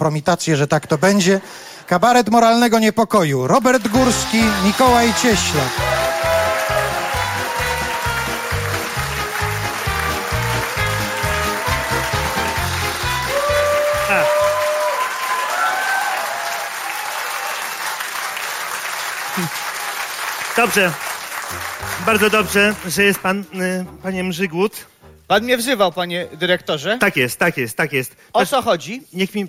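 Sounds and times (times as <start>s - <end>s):
speech: 0.0s - 5.8s, 20.6s - 29.4s
crowd audience applause: 3.6s - 23.5s.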